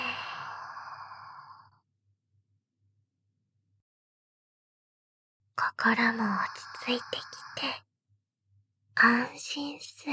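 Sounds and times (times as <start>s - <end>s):
person breathing out during a guided relaxation exercise: 0.0s - 1.7s
speech: 5.8s - 7.9s, 9.0s - 10.1s.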